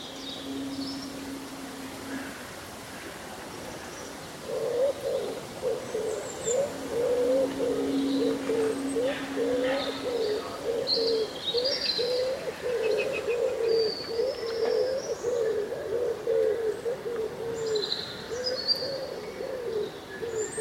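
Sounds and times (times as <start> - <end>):
dense pulsing cooing: 0.0 - 3.2, 4.4 - 17.8
low hum: 0.0 - 13.3
rustling leaves on a breezy summer day: 0.0 - 20.5.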